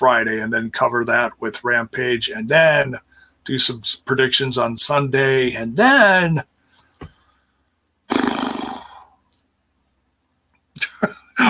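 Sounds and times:
speech: 0:00.0 - 0:07.1
voice imitating a horse whinny: 0:08.1 - 0:09.1.

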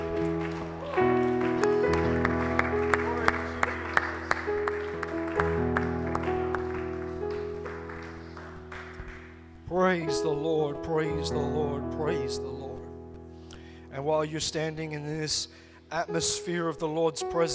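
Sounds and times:
audience clapping hands in praise: 0:00.0 - 0:09.6
sustained organ or keyboard chords: 0:00.0 - 0:17.5
speech: 0:10.9 - 0:12.6, 0:14.0 - 0:17.5.

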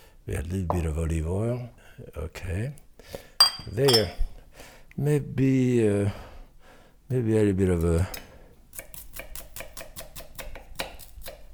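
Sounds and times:
speech: 0:00.3 - 0:06.3, 0:07.1 - 0:08.2
dull knife chopping red onion on a board in a home kitchen: 0:08.7 - 0:11.5.

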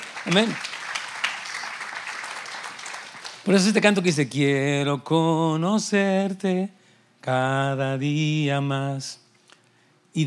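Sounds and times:
audience applause: 0:00.0 - 0:04.0
speech: 0:00.2 - 0:00.7, 0:03.4 - 0:09.2.

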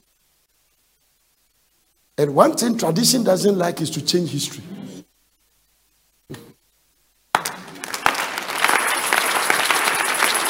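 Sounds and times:
speech: 0:02.2 - 0:04.8
audience applause: 0:07.3 - 0:10.4.

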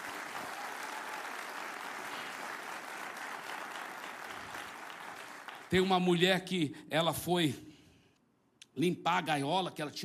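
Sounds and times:
audience applause: 0:00.0 - 0:05.7
speech: 0:05.7 - 0:07.7, 0:08.8 - 0:10.0.

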